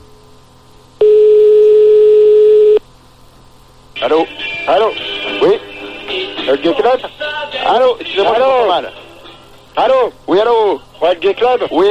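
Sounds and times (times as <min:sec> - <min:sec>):
faint hiss: 0:00.0 - 0:11.8
telephone tone while calling a nightclub: 0:01.0 - 0:02.8
speech: 0:04.0 - 0:05.6, 0:06.4 - 0:09.0, 0:09.8 - 0:11.8.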